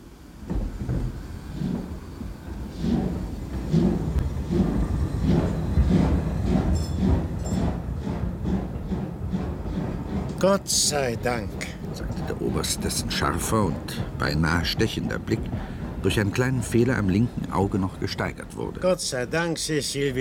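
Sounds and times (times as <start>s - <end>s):
train starting to move: 0.0s - 20.1s
speech: 10.4s - 11.7s, 12.4s - 20.1s.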